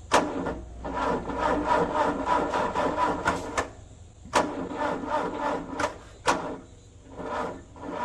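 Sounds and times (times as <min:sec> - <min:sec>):
ice resurfacer engine failing to start: 0:00.0 - 0:08.0.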